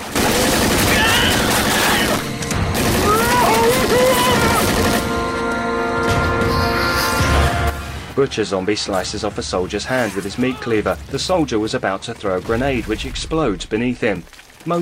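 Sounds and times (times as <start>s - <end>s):
rapid gunfire in a zombie film: 0.0s - 5.3s
wailing tonal sounds: 0.8s - 7.8s
speech: 8.2s - 14.7s.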